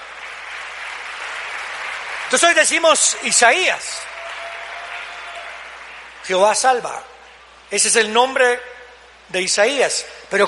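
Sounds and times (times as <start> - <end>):
audience applause: 0.0 - 6.8
speech: 2.3 - 4.1, 6.3 - 7.1, 7.7 - 8.7, 9.3 - 10.4.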